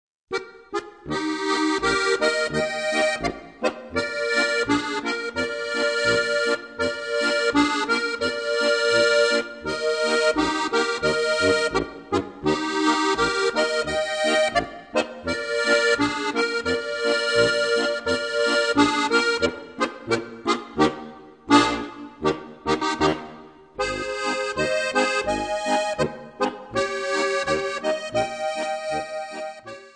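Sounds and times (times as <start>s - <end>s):
polka music: 0.3s - 29.9s.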